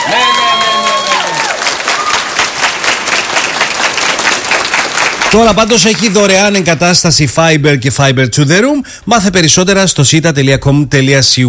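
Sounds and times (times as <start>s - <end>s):
applause: 0.0s - 6.3s
speech: 5.3s - 11.4s.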